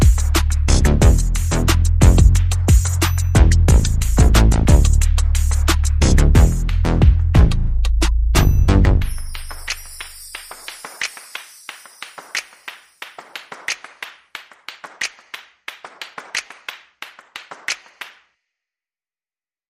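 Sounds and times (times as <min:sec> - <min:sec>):
bass: 0:00.0 - 0:10.2
percussion: 0:00.0 - 0:18.3.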